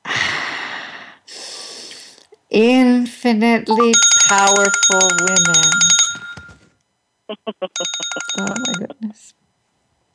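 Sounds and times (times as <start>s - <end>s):
deep breaths drawn in before singing: 0.0s - 2.3s
speech: 2.5s - 5.8s, 7.3s - 9.4s.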